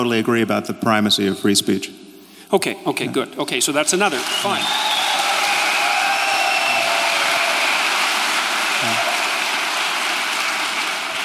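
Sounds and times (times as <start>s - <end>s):
speech: 0.0s - 5.1s
crowd applauding: 3.7s - 11.2s.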